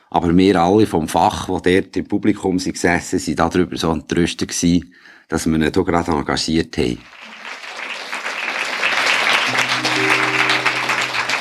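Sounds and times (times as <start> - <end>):
speech: 0.1 - 7.5
applause: 7.0 - 11.3.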